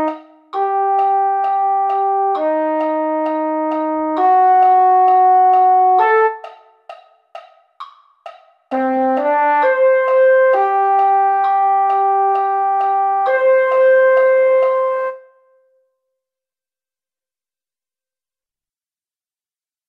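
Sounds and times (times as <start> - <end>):
mellophone: 0.0 - 6.8, 8.8 - 15.8.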